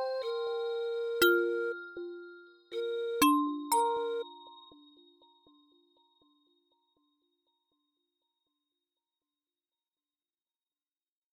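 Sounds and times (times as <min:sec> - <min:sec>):
music box: 0:00.0 - 0:05.9.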